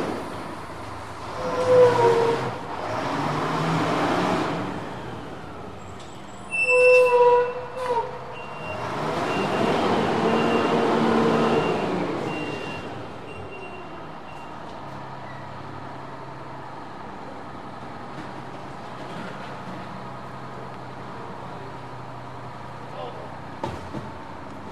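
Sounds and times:
garbage truck: 0.0 - 24.6.

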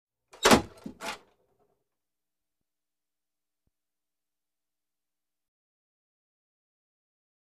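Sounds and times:
metal mailbox door: 0.4 - 1.2.

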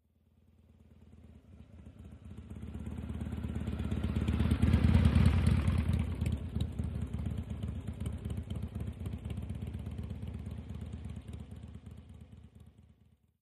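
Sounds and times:
Harley motorcycle: 0.1 - 13.3.

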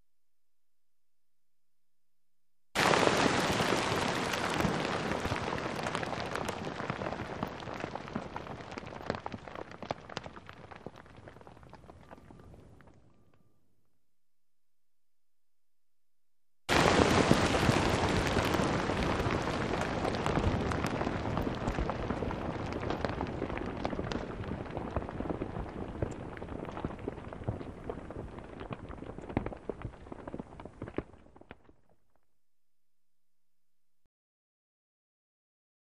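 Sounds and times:
dirt debris, rock and sand falling: 2.8 - 13.0, 16.7 - 32.2.

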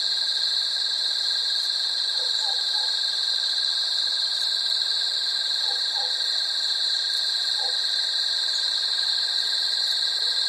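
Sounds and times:
cricket trilling: 0.0 - 10.4.

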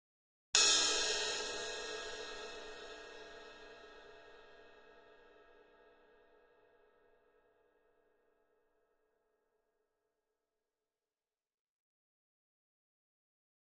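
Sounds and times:
small drum kit cymbal single hit: 0.6 - 6.5.

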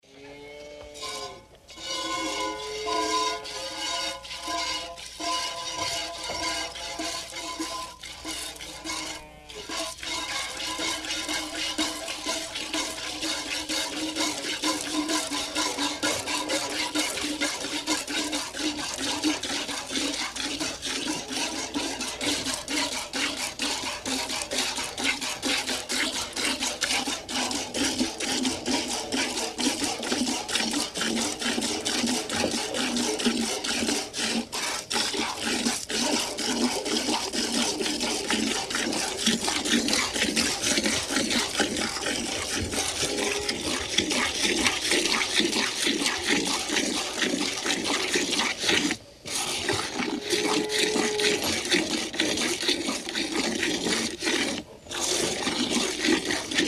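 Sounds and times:
cow milked by hand, milk squirting into metal bucket: 1.9 - 56.6.

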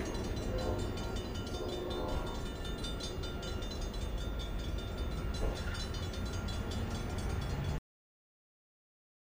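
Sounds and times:
train horn: 0.0 - 3.1
train idling: 0.0 - 7.8.

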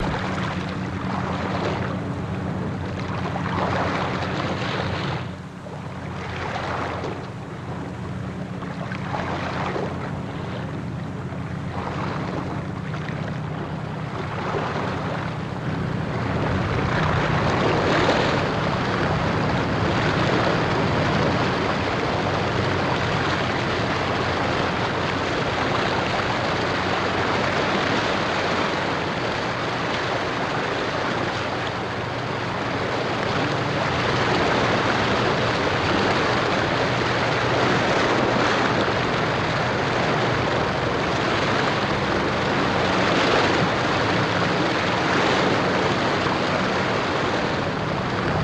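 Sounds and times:
gentle water movement of a bow wash: 0.0 - 48.4.

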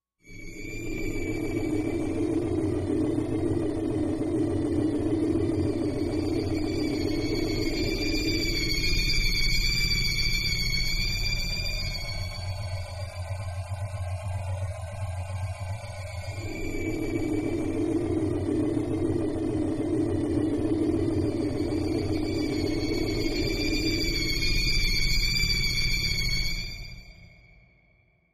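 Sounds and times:
eerie high-tone ambience: 0.3 - 28.3.

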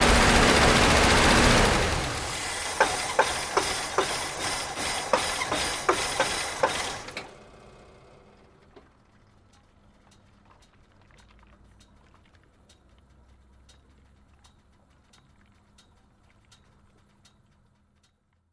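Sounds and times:
diesel car engine turning off: 0.0 - 9.2.

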